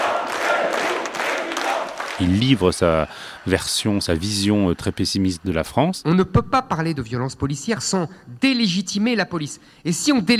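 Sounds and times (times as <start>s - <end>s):
large audience applauding: 0.0s - 5.8s
speech: 2.2s - 10.3s.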